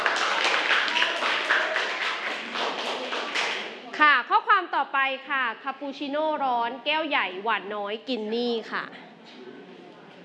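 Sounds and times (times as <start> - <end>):
classroom applause: 0.0 - 3.8
speech: 5.1 - 9.1.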